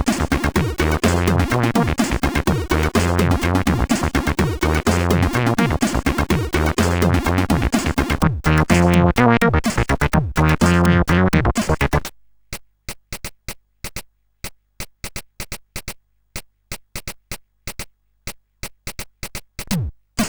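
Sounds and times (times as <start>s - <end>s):
house music mix on a CSG8580R5 sound chip: 0.0s - 12.1s, 19.7s - 20.2s.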